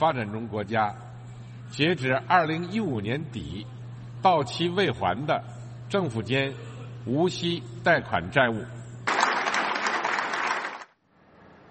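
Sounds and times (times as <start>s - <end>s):
speech: 0.0s - 1.1s, 1.7s - 8.8s
warm applause in a conference hall: 9.1s - 11.0s.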